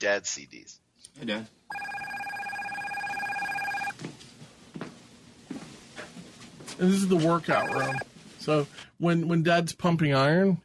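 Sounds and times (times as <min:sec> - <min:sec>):
speech: 0:00.0 - 0:02.1, 0:06.8 - 0:10.6
telephone ringing: 0:01.7 - 0:03.9, 0:07.4 - 0:08.0.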